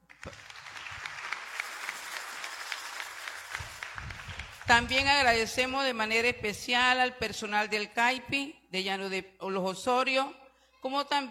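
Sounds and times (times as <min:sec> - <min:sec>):
audience applause: 0:00.0 - 0:04.9
speech: 0:04.7 - 0:11.2.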